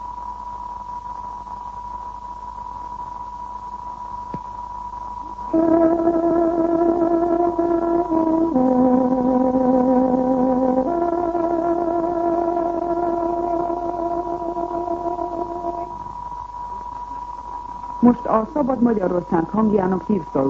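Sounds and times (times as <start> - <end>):
faint radio hiss: 0.0 - 20.4
tárogató playing a slow sustained melody as a radio time signal: 5.5 - 15.9
speech: 18.3 - 20.4.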